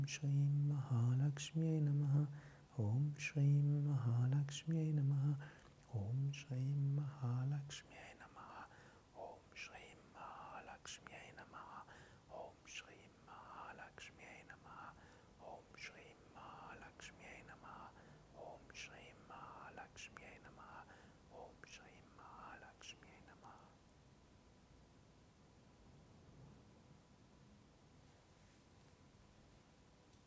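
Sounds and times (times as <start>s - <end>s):
person whispering Japa mantra recitation: 0.0s - 23.8s.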